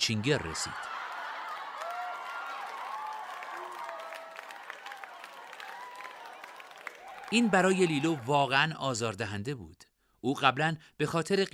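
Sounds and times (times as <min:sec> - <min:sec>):
speech: 0:00.0 - 0:01.0, 0:07.3 - 0:11.5
crowd cheering and applause: 0:00.0 - 0:08.5.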